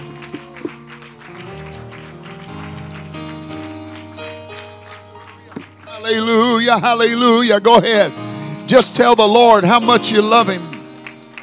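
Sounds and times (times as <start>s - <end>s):
audience clapping hands: 0.0s - 7.9s, 9.6s - 11.4s
sustained organ-like keyboard chords: 0.0s - 11.4s
speech: 6.0s - 10.7s.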